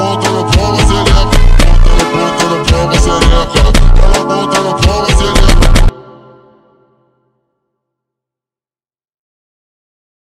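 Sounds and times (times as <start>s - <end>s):
slowed Brazilian funk remix: 0.0s - 6.3s.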